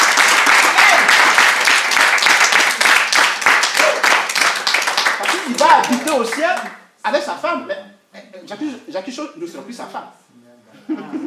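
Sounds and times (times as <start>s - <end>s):
congregation applauding in church: 0.0s - 6.9s
speech: 6.1s - 10.2s, 10.9s - 11.2s.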